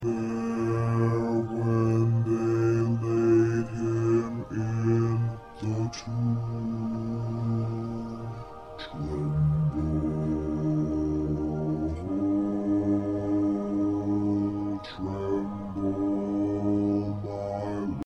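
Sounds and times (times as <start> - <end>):
bass: 0.0 - 18.0.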